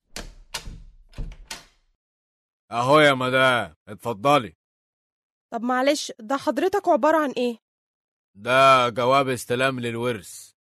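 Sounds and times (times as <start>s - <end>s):
thumps at a door as a court letter is delivered: 0.1s - 1.7s
speech: 2.7s - 4.6s, 5.5s - 7.6s, 8.4s - 10.5s.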